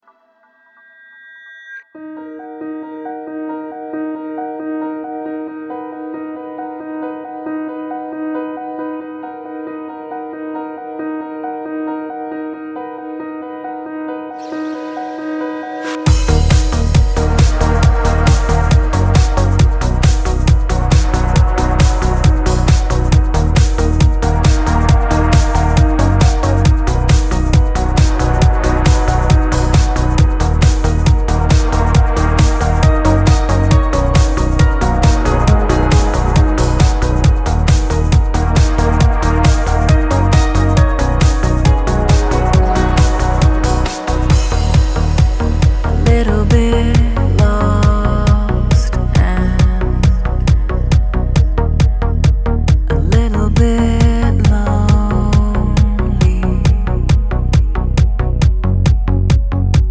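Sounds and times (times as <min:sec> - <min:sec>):
trance music: 0:14.4 - 0:59.8.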